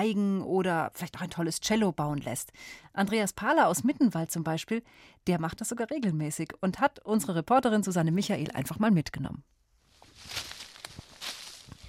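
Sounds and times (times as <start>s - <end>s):
speech: 0.0s - 9.6s
footsteps walking uphill on a mountain path near Mittenwald: 9.9s - 11.8s
light rustling: 9.9s - 11.8s.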